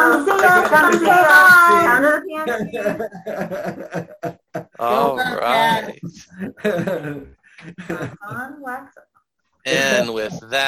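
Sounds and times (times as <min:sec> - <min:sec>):
people clapping hands: 0:00.0 - 0:02.0
laughter: 0:00.0 - 0:08.6
speech: 0:04.8 - 0:09.0, 0:09.6 - 0:10.6.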